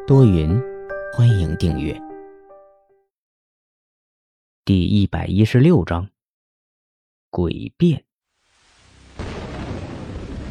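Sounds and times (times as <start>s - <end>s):
speech: 0.0s - 2.1s, 4.7s - 6.1s, 7.3s - 8.1s
rolling thunder: 9.0s - 10.4s.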